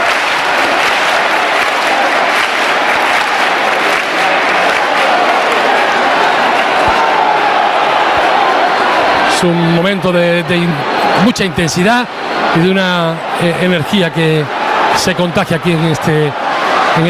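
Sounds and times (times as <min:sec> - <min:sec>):
crowd clapping to welcome a procession: 0:00.0 - 0:17.0
speech: 0:09.4 - 0:16.4.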